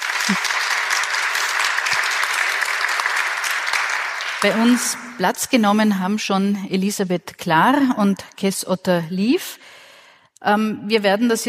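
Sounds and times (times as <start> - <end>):
audience applause: 0.0 - 5.2
speech: 0.3 - 0.6, 4.4 - 9.8, 10.4 - 11.4.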